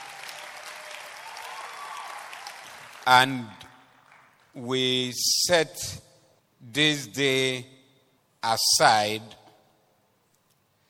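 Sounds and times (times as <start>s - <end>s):
audience applause: 0.0s - 3.3s
speech: 3.1s - 3.6s, 4.6s - 7.8s, 8.4s - 9.4s.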